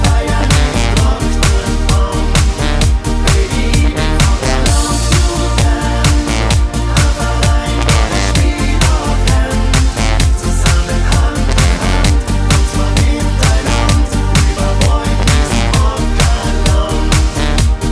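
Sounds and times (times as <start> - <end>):
choir singing in B flat major: 0.0 - 17.8.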